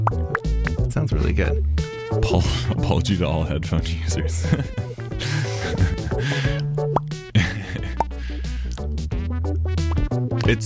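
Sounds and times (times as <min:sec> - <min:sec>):
soft synthesized bubble pops: 0:00.0 - 0:00.9, 0:06.9 - 0:07.2
low droning bass: 0:00.0 - 0:10.2
speech: 0:01.0 - 0:06.6, 0:10.5 - 0:10.6
laughter: 0:04.2 - 0:06.6, 0:07.4 - 0:08.0.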